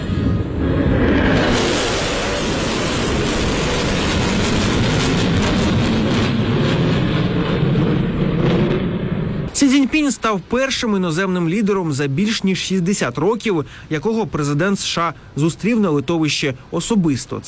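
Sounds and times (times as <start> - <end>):
military jet aircraft flyover: 0.0 - 9.6
speech: 10.0 - 17.4.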